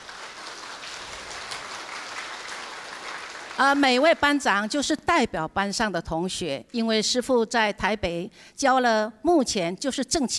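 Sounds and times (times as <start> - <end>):
audience applause: 0.0 - 4.1
speech: 3.6 - 10.3.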